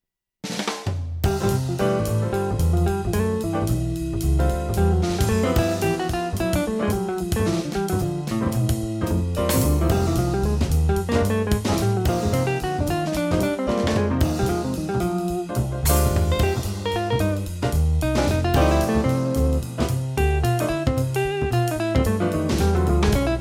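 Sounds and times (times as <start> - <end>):
guitar: 1.4 - 23.3.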